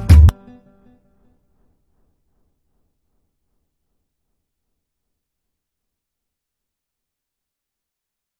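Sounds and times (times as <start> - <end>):
music beat: 0.0 - 0.9.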